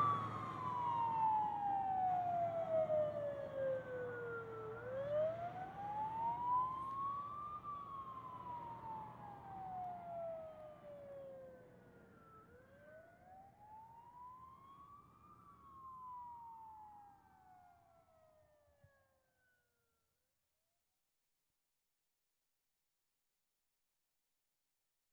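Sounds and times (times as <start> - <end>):
fire engine passing right to left with wail siren: 0.0 - 18.6.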